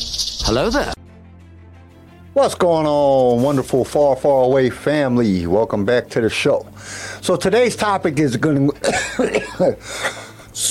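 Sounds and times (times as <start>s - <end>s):
speech: 0.5s - 1.0s, 2.4s - 10.3s
person coughing: 8.8s - 9.7s.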